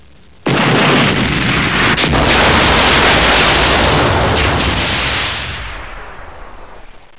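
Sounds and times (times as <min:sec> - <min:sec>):
explosion: 0:00.5 - 0:07.1.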